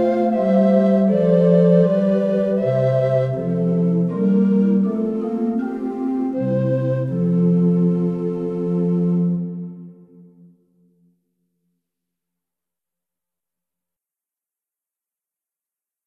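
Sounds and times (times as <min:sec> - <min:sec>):
instrumental music: 0:00.0 - 0:11.8.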